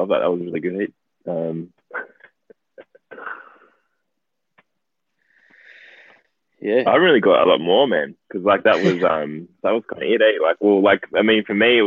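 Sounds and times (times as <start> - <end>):
speech: 0.0 - 1.8, 6.6 - 11.8
person coughing: 2.9 - 3.7.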